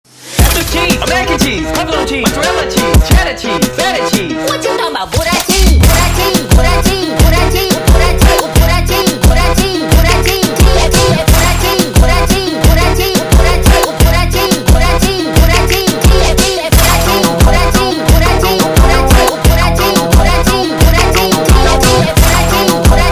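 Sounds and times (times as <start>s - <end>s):
sped up brega music: 0.1s - 23.0s.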